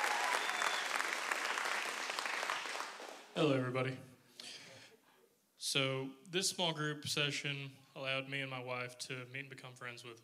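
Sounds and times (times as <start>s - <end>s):
audience applause: 0.0s - 3.3s
speech: 3.4s - 4.1s, 5.7s - 10.2s.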